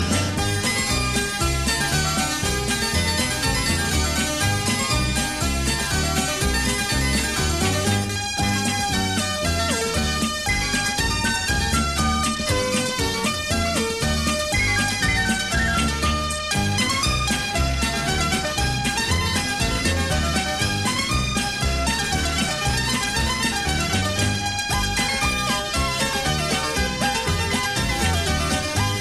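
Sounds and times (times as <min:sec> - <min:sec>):
ringtone: 0:00.0 - 0:29.0.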